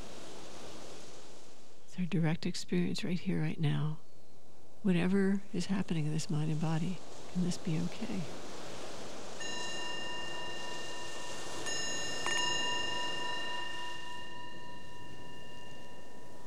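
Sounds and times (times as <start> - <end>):
speech: 2.0 - 4.0, 4.8 - 8.5
meditation bell: 9.3 - 16.4.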